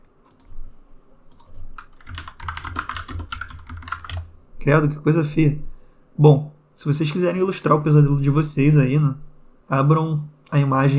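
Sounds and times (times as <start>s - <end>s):
typing Jeff The Killer into Google on a computer keyboard: 1.3s - 4.3s
speech: 4.6s - 10.9s.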